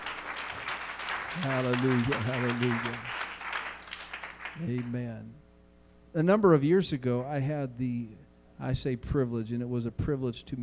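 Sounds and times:
crowd clapping: 0:00.0 - 0:04.9
speech: 0:01.4 - 0:03.2, 0:04.6 - 0:05.4, 0:06.1 - 0:10.6.

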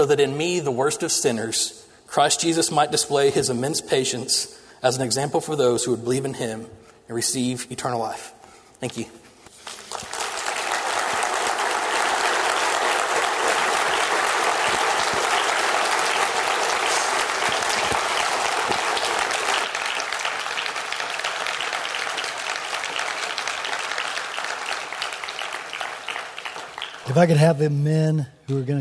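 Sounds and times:
speech: 0:00.0 - 0:09.2, 0:27.2 - 0:28.7
audience applause: 0:09.6 - 0:27.4.

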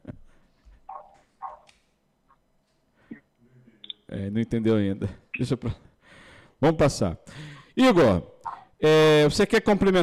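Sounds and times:
small dog barking in the background: 0:00.9 - 0:01.6, 0:08.4 - 0:08.7
speech: 0:04.2 - 0:05.9, 0:06.6 - 0:10.0.

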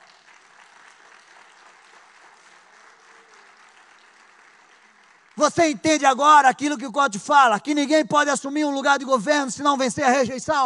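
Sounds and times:
audience applauding: 0:00.0 - 0:05.8
speech: 0:05.4 - 0:10.6.

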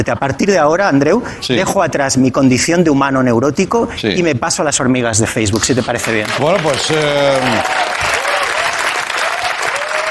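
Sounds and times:
speech: 0:00.0 - 0:08.1
television studio audience applauding: 0:05.6 - 0:10.1.

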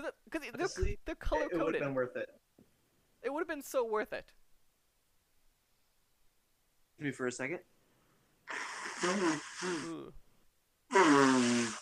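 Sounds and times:
speech: 0:00.1 - 0:02.4, 0:03.2 - 0:04.4, 0:07.0 - 0:07.7, 0:08.5 - 0:10.2, 0:10.9 - 0:11.8
person blowing nose: 0:08.4 - 0:10.1, 0:10.9 - 0:11.8.

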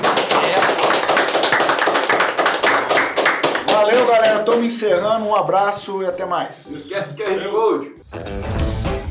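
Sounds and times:
round of applause: 0:00.0 - 0:04.7
speech: 0:04.4 - 0:09.0.

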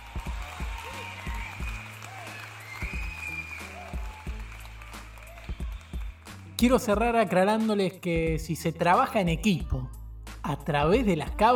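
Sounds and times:
audience applause: 0:00.0 - 0:06.5
speech: 0:06.6 - 0:09.8, 0:10.5 - 0:11.5.

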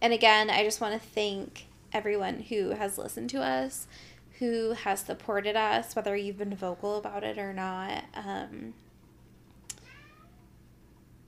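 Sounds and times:
speech: 0:00.0 - 0:08.8
hungry pet cat meowing: 0:09.7 - 0:10.5.

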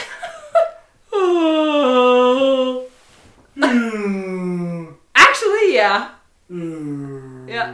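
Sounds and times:
voice imitating a whale call: 0:01.2 - 0:02.9, 0:03.6 - 0:05.0, 0:06.5 - 0:07.7
speech: 0:05.8 - 0:07.7.

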